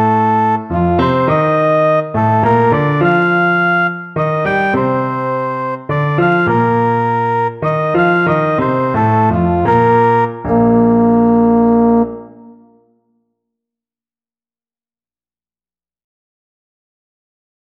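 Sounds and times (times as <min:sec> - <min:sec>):
trombone: 0:00.0 - 0:12.8.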